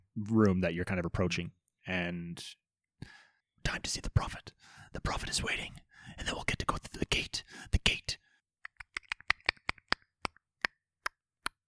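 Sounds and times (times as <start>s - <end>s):
speech: 0.2s - 8.2s
sharp dry clicks: 8.7s - 11.6s.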